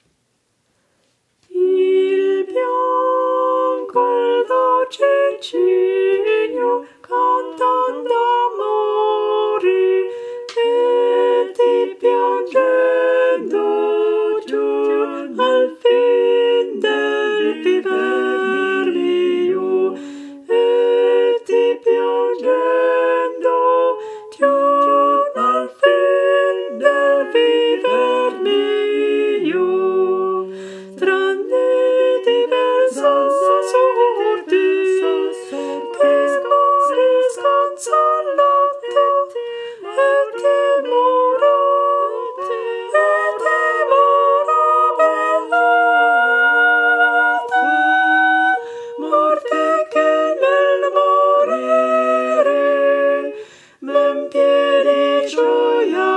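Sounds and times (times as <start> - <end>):
tenor singing: 1.4 - 56.1.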